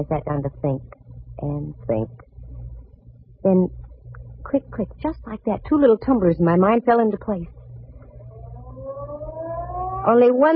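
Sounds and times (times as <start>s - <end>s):
speech: 0.0s - 2.3s, 3.4s - 3.8s, 4.4s - 7.6s, 10.0s - 10.5s
Ferry Building siren in San Francisco: 7.8s - 10.5s.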